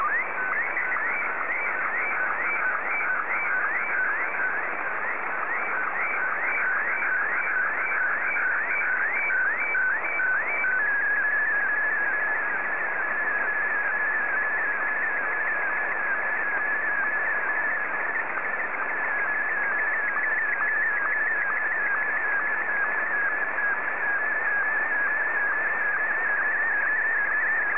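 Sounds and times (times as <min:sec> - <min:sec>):
Martin 1 slow-scan television signal: 0:00.0 - 0:27.7.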